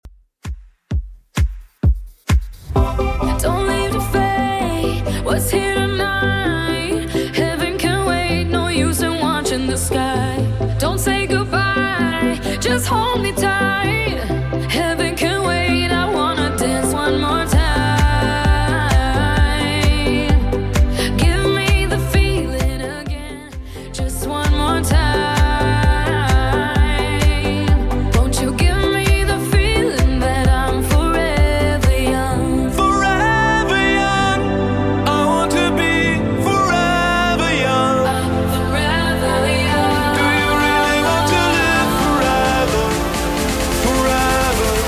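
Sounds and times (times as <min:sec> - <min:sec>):
house music at 130 bpm: 0:00.4 - 0:44.8.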